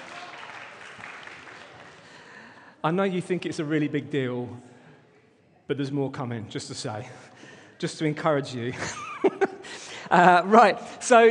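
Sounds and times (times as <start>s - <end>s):
church congregation applauding students: 0.0s - 2.6s
speech: 2.8s - 4.7s, 5.7s - 9.4s, 10.1s - 11.2s
laughter: 8.7s - 10.5s.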